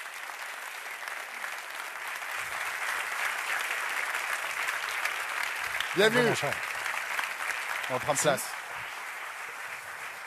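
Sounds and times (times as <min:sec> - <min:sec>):
audience applause welcoming a guest onto a stage: 0:00.0 - 0:10.2
speech: 0:06.0 - 0:06.7, 0:07.9 - 0:08.6.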